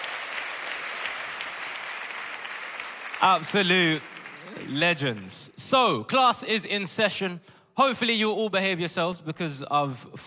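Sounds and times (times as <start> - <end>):
audience round of applause: 0.0 - 5.6
speech: 3.2 - 10.2.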